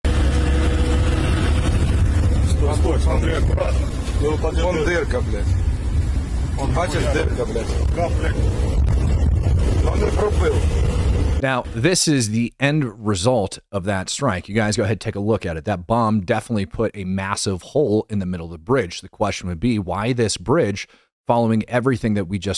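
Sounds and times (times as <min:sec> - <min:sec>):
vehicle engine driving over a bomb-damaged bridge: 0:00.0 - 0:11.8
wind buffeting the microphone: 0:00.2 - 0:11.4
speech: 0:04.3 - 0:05.7, 0:06.6 - 0:10.8, 0:11.4 - 0:22.5.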